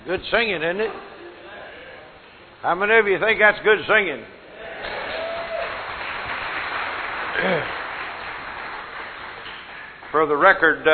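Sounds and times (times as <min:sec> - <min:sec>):
speech: 0:00.1 - 0:01.1, 0:02.6 - 0:04.4, 0:10.1 - 0:10.9
audience clapping: 0:04.8 - 0:10.9.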